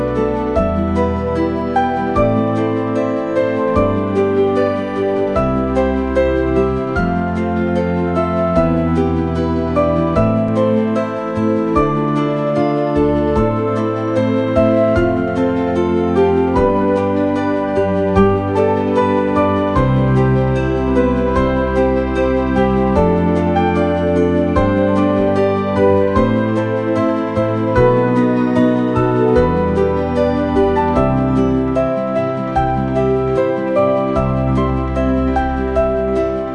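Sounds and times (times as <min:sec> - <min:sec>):
music: 0:00.0 - 0:36.5.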